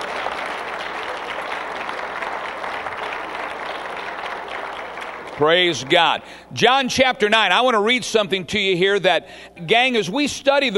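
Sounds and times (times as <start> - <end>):
people clapping: 0.0 - 6.2
speech: 5.4 - 10.7.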